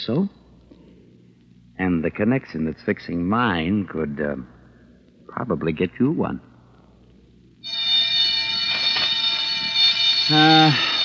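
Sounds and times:
speech: 0.0 - 0.4, 1.8 - 4.6, 5.3 - 6.5, 10.3 - 10.9
prison yard bell ringing: 7.6 - 11.0.

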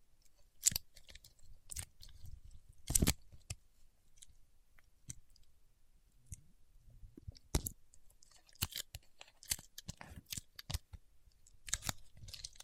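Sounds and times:
paraffin wax peeled, tapped and scratched: 0.6 - 2.2, 2.8 - 3.6, 7.2 - 12.6.

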